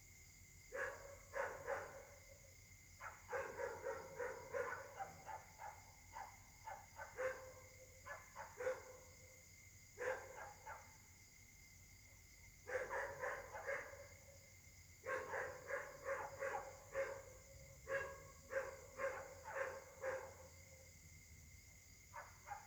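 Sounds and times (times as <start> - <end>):
insects droning: 0.0 - 22.6
dogs barking: 0.8 - 2.1, 3.0 - 9.1, 10.0 - 10.9, 12.7 - 14.2, 15.1 - 20.5, 22.2 - 22.6.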